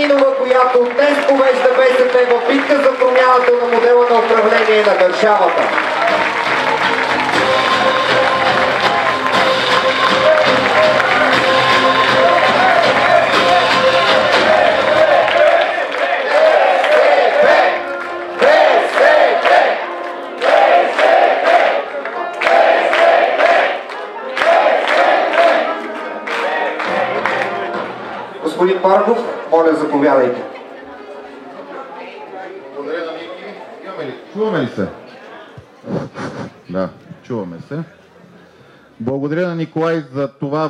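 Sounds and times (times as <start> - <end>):
speech: 0.0 - 6.4, 28.6 - 30.5, 34.4 - 35.0, 35.8 - 38.0, 39.0 - 40.6
applause for the chair of the Bulgarian Socialist Party: 0.0 - 28.6.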